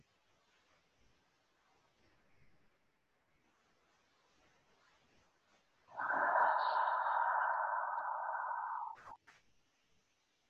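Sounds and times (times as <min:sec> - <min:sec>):
slow deep breath during a guided breathing exercise: 0:05.9 - 0:09.2.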